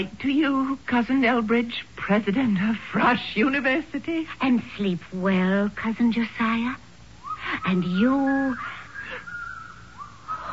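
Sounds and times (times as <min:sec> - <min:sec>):
speech: 0:00.0 - 0:06.8, 0:07.4 - 0:08.8
eerie whistling: 0:07.2 - 0:10.5.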